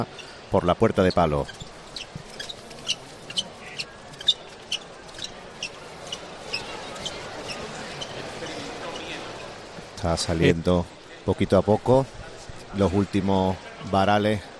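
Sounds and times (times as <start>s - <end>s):
speech: 0.0s - 2.1s, 10.0s - 14.5s
low murmur: 0.0s - 14.5s
shuffling footsteps of float bearers' sandals: 1.2s - 9.3s.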